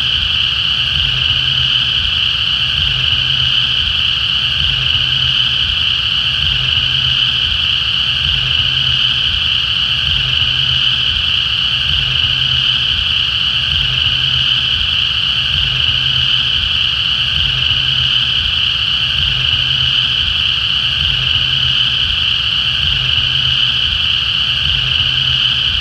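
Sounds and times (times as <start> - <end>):
cicada at Cane Creek: 0.0 - 25.7.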